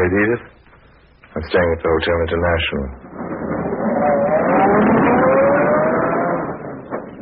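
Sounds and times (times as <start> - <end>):
speech: 0.1 - 0.6, 1.4 - 5.0
limousine engine humming while driving: 3.6 - 7.2.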